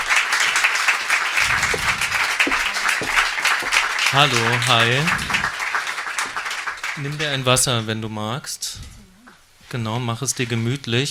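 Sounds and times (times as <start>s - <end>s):
audience applause: 0.0s - 7.2s
speech: 4.1s - 5.3s, 7.0s - 8.9s, 9.7s - 11.1s.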